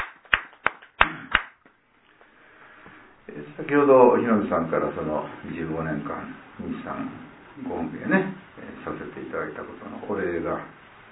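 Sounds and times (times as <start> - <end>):
applause: 0.0 - 1.6
speech: 3.3 - 11.1.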